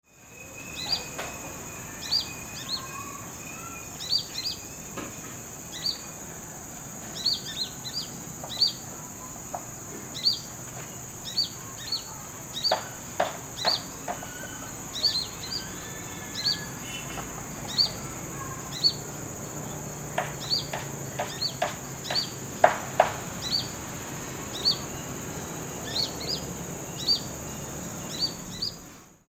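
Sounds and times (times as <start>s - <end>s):
brown-throated sunbird calling: 0.2s - 29.2s.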